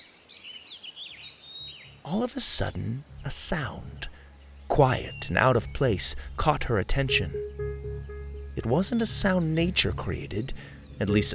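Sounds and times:
birds chirping overhead: 0:00.0 - 0:11.3
speech: 0:02.0 - 0:04.1, 0:04.7 - 0:07.7, 0:08.6 - 0:11.3.

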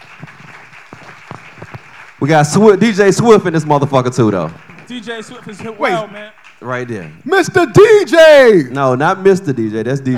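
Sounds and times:
audience applause: 0:00.0 - 0:07.5
speech: 0:02.2 - 0:10.1.

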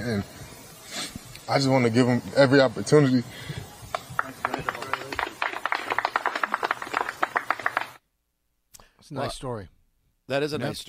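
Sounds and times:
speech: 0:00.0 - 0:00.4, 0:01.5 - 0:03.6, 0:09.1 - 0:10.8
journalists clapping at a press conference: 0:03.6 - 0:08.0.

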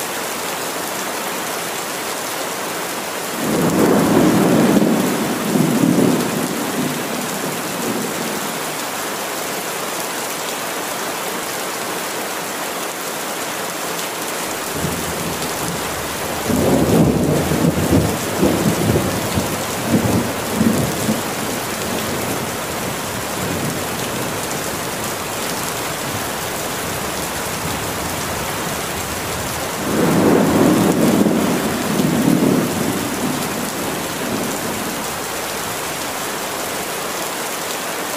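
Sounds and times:
steady rain: 0:00.0 - 0:38.1
rumbling thunder: 0:03.4 - 0:08.4, 0:14.8 - 0:35.1.

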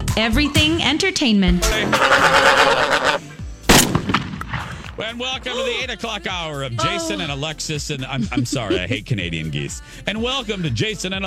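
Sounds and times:
speech: 0:00.2 - 0:03.4, 0:05.0 - 0:11.2
laughter: 0:02.8 - 0:05.8
gunshot: 0:03.7 - 0:05.0.

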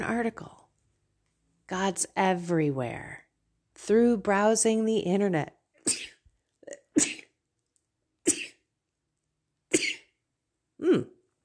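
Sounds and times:
speech: 0:00.0 - 0:00.6, 0:01.7 - 0:03.2, 0:03.8 - 0:06.1, 0:07.0 - 0:07.2, 0:10.8 - 0:11.2
person sneezing: 0:05.8 - 0:06.2, 0:06.8 - 0:07.3, 0:08.2 - 0:08.6, 0:09.7 - 0:10.1.

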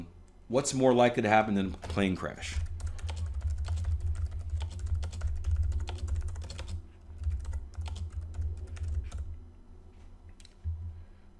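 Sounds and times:
low steady hum: 0:00.0 - 0:11.3
speech: 0:00.5 - 0:02.7
typing a search on computer keyboard: 0:01.7 - 0:09.4.

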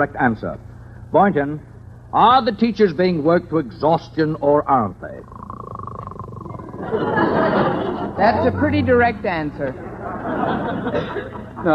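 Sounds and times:
speech: 0:00.0 - 0:05.4, 0:06.8 - 0:07.2, 0:08.2 - 0:09.8, 0:10.4 - 0:11.7
person snoring: 0:05.2 - 0:07.0
laughter: 0:06.6 - 0:11.7.

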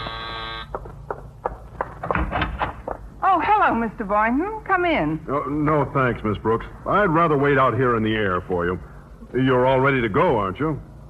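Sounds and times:
doorbell electric buzz: 0:00.0 - 0:00.8
faint scattered clicks and knocks: 0:00.6 - 0:03.1
speech: 0:03.7 - 0:10.9.

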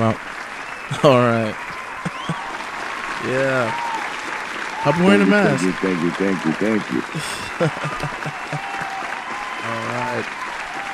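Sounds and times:
speech: 0:00.0 - 0:00.3, 0:00.9 - 0:01.7, 0:03.2 - 0:03.8, 0:04.8 - 0:08.9, 0:09.6 - 0:10.5
audience applause: 0:00.0 - 0:10.9
laughter: 0:00.9 - 0:02.6, 0:04.9 - 0:10.2
short voiced shouts: 0:00.9 - 0:10.9.

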